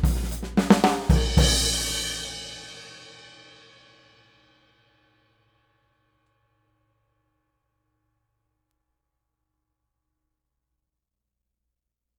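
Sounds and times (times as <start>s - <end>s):
Zildjian cymbal: 0.0s - 5.1s.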